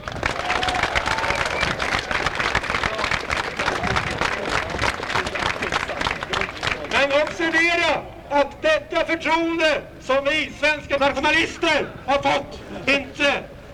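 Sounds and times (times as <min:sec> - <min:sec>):
crowd applause: 0:00.0 - 0:07.6
speech: 0:07.6 - 0:13.5.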